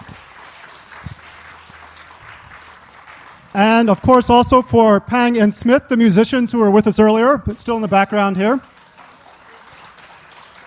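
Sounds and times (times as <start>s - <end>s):
audience applause for hula dancers: 0.0s - 4.4s, 8.1s - 10.6s
speech: 3.6s - 8.7s.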